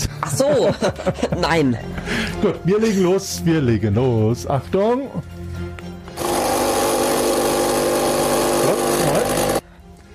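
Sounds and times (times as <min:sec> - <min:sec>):
laughter: 0:00.0 - 0:02.6
speech: 0:00.3 - 0:05.3
coffee machine running: 0:06.2 - 0:09.6.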